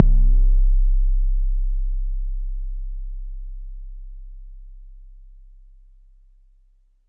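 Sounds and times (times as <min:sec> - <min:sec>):
bass drum: 0:00.0 - 0:05.6.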